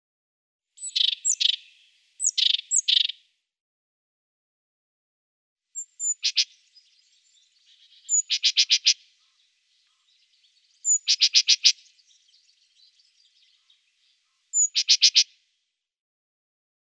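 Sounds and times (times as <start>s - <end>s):
great tit song: 0.8s - 3.2s, 5.8s - 15.4s.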